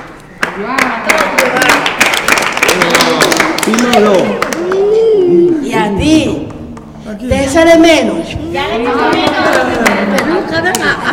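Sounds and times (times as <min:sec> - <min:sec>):
applause: 0:00.4 - 0:04.7
speech: 0:00.6 - 0:01.8, 0:03.7 - 0:04.5, 0:05.8 - 0:06.5, 0:07.1 - 0:11.1.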